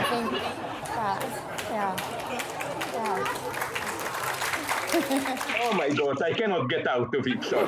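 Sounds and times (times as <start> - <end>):
laughter: 0.0 - 6.5, 7.3 - 7.6
audience applauding and cheering: 1.6 - 6.1
speech: 5.1 - 7.6.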